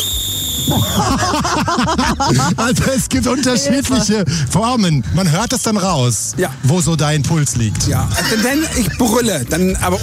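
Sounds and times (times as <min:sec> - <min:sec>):
angry whistle blast: 0:00.0 - 0:01.2
speech: 0:00.6 - 0:10.0
laughter: 0:00.7 - 0:04.4, 0:08.0 - 0:10.0.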